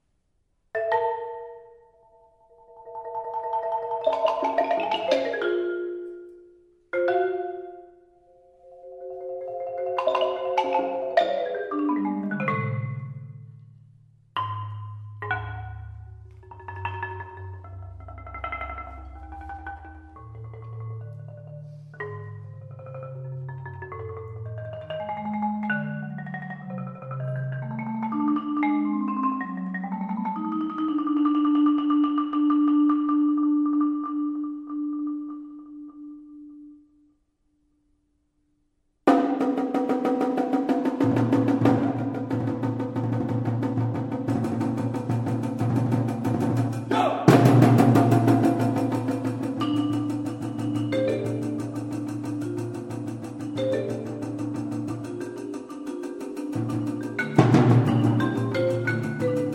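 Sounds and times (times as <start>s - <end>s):
marimba: 0.7s - 37.1s, 39.1s - 59.5s.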